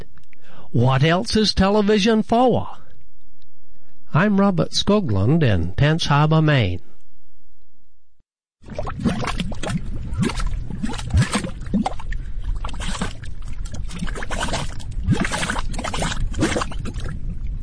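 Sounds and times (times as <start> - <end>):
speech: 0.7 - 2.8, 4.1 - 6.9
bubbling mud pots spitting gray mud: 8.6 - 17.6.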